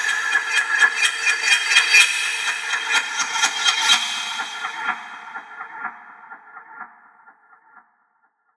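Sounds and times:
sharp metallic horror transition: 0.1s - 5.9s.

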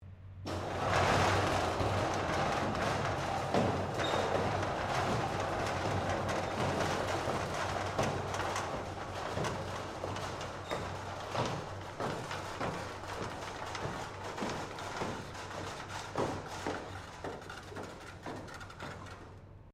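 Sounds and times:
medium size loading bay roller door opening: 0.5s - 19.4s.

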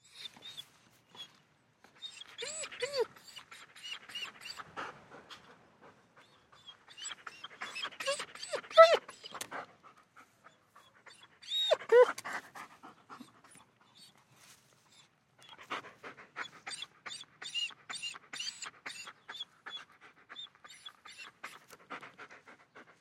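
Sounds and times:
German Shepherd whining lightly: 0.0s - 0.6s, 2.0s - 4.7s, 6.2s - 9.6s, 11.0s - 12.4s, 16.4s - 22.0s
German Shepherd panting: 1.9s - 22.9s.

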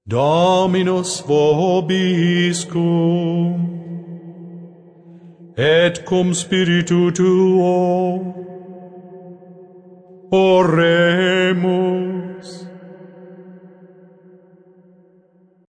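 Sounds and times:
man singing a Latin prayer: 0.0s - 4.2s, 5.5s - 8.6s, 10.3s - 13.5s.

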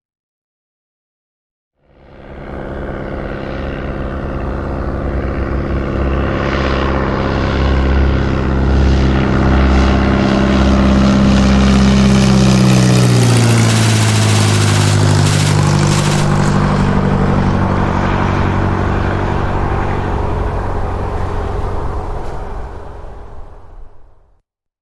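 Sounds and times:
propeller aircraft passing on a strafing run: 1.8s - 24.4s
aircraft machine gun fire: 12.8s - 17.3s.

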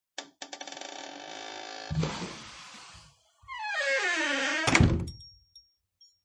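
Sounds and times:
door creaking: 0.4s - 5.2s
wooden door closing: 3.5s - 5.1s.

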